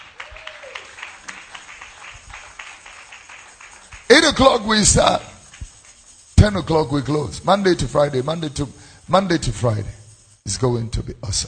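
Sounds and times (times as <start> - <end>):
audience clapping hands: 0.0 - 6.2
speech: 4.2 - 5.3, 6.4 - 11.4.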